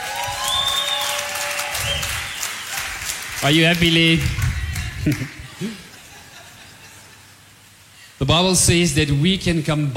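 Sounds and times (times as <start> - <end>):
audience applause: 0.0 - 5.4
speech: 3.4 - 4.4, 5.0 - 5.8, 8.2 - 9.9
laughter: 4.8 - 7.5.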